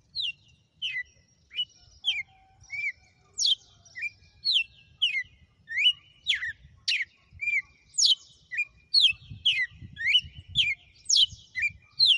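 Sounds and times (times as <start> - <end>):
female red-cowled cardinal whistled song: 0.1 - 12.1.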